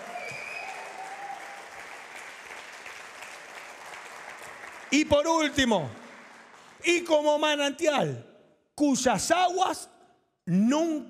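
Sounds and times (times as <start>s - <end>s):
whistles and cheers: 0.0s - 2.7s
audience applause: 0.0s - 7.1s
speech: 4.9s - 6.0s, 6.8s - 9.9s, 10.5s - 11.0s.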